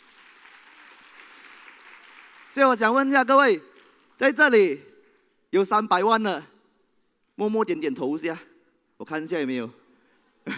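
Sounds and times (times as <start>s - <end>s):
audience applause: 0.0s - 3.1s
speech: 2.6s - 4.9s, 5.5s - 6.5s, 7.4s - 9.8s.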